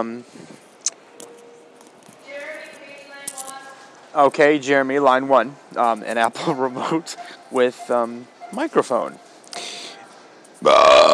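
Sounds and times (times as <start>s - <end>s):
speech: 0.0s - 0.6s, 4.1s - 9.2s, 10.6s - 11.1s
loud burp: 10.6s - 11.1s.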